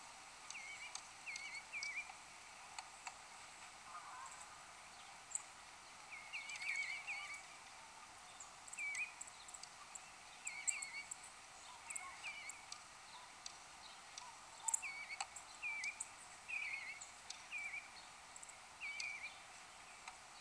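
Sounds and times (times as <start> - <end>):
steady hiss: 0.0 - 20.3
Eastern bluebird soft warbled calls: 6.1 - 13.4, 14.1 - 17.9, 18.8 - 19.4.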